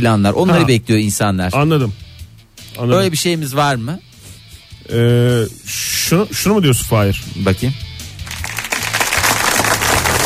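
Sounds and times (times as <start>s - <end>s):
speech: 0.0s - 2.1s, 2.8s - 4.1s, 4.8s - 7.9s
crowd clapping: 8.2s - 10.2s.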